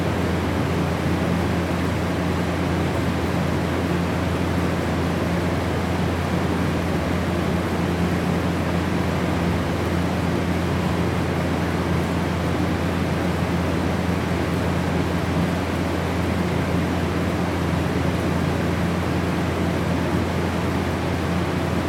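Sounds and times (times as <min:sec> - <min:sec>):
walk-in freezer industrial machinery inside: 0:00.0 - 0:21.8.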